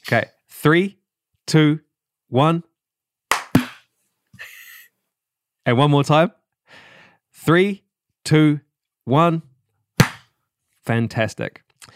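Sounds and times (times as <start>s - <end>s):
speech: 0.1s - 2.7s, 5.6s - 6.8s, 7.4s - 9.5s, 10.9s - 11.9s
sync hand clap after countdown: 3.3s - 3.8s, 10.0s - 10.3s.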